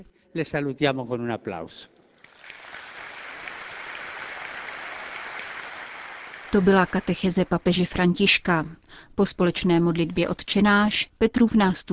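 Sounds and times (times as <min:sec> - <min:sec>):
speech: 0:00.0 - 0:02.0, 0:06.5 - 0:11.9
audience applause for mothers: 0:02.2 - 0:07.8.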